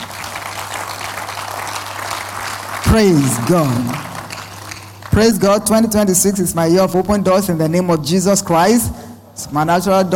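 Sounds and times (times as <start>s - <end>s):
audience applause: 0.0s - 5.2s
speech: 2.9s - 4.1s, 5.2s - 10.1s.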